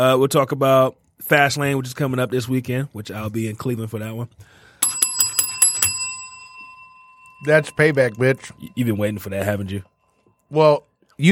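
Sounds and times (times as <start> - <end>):
speech: 0.0 - 4.6, 7.4 - 9.9, 10.5 - 11.2
bell ringing: 4.8 - 10.5.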